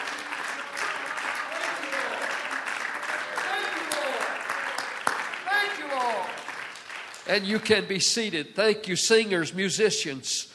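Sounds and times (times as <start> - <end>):
church congregation clapping in praise: 0.0 - 8.0
speech: 7.3 - 10.5.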